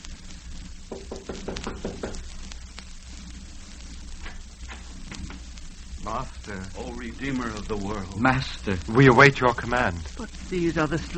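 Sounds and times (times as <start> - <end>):
knocking on a wooden door: 0.9 - 2.2
speech: 6.1 - 11.1.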